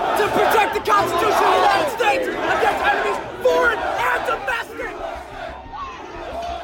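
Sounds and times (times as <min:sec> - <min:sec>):
mob of people storming a building: 0:00.0 - 0:06.6.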